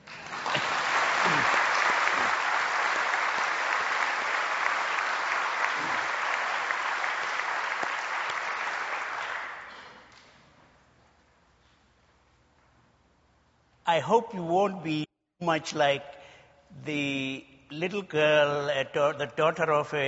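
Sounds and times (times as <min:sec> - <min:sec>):
audience applause: 0:00.0 - 0:09.8
speech: 0:14.0 - 0:20.0.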